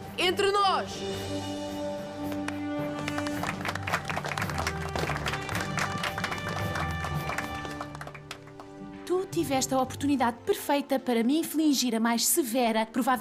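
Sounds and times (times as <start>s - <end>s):
speech: 0.3s - 1.8s, 9.4s - 13.1s
applause: 2.2s - 8.8s.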